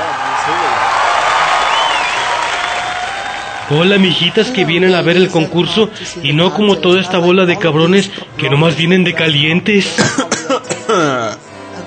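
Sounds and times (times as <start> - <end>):
audience applause: 0.0 - 5.8
speech: 3.7 - 11.2.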